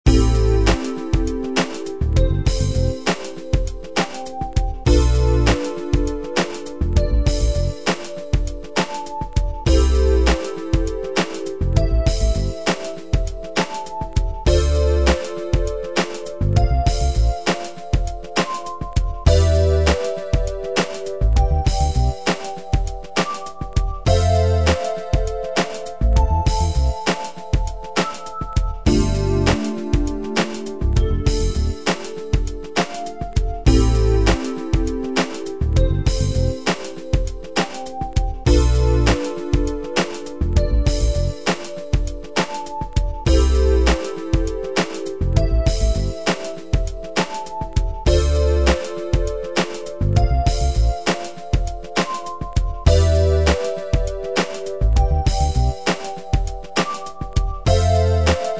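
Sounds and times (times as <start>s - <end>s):
funk chords: 0.1s - 58.5s.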